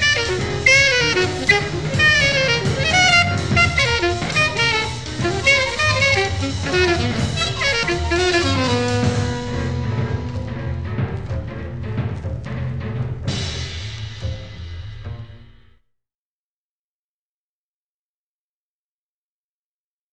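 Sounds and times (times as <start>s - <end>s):
drums: 0.0s - 15.8s.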